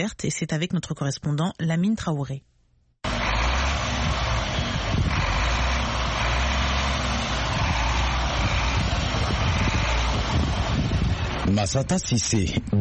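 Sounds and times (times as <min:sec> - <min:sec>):
speech: 0:00.0 - 0:02.5, 0:11.5 - 0:12.7
gusty wind noise: 0:03.0 - 0:12.7
heavy truck engine rumbling: 0:03.0 - 0:12.7.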